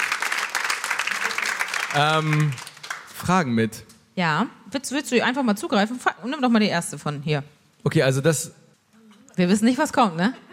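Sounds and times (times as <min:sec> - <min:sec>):
audience applause: 0:00.0 - 0:03.4
speech: 0:01.9 - 0:02.6, 0:03.2 - 0:08.6, 0:09.4 - 0:10.5.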